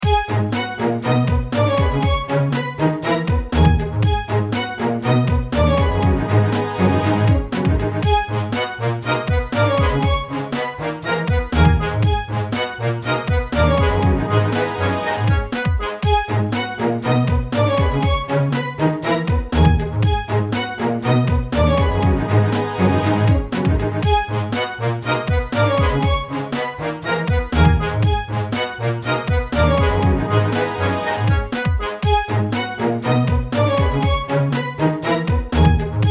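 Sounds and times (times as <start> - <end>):
instrumental music: 0.0 - 36.0.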